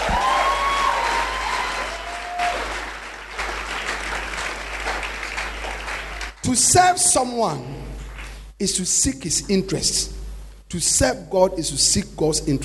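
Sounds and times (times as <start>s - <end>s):
audience applause, clapping hands: 0.0s - 6.6s, 8.0s - 8.5s
speech: 6.5s - 7.9s, 8.6s - 12.6s.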